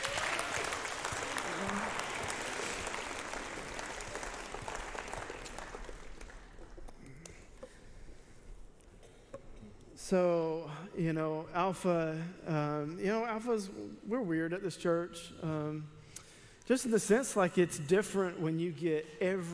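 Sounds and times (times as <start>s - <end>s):
audience applause: 0.0s - 7.6s
speech: 10.1s - 16.0s, 16.7s - 19.5s.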